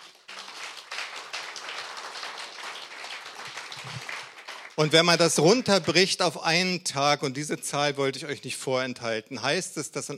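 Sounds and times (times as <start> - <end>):
audience applause: 0.0 - 6.1
speech: 4.8 - 10.1.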